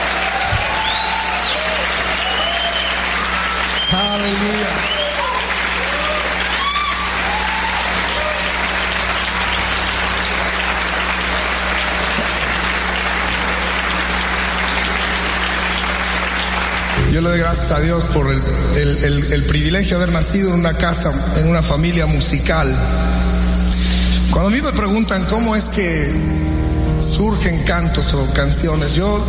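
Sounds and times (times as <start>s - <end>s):
audience clapping: 0.0s - 17.6s
speech: 17.2s - 23.4s, 24.4s - 26.4s, 27.0s - 29.2s.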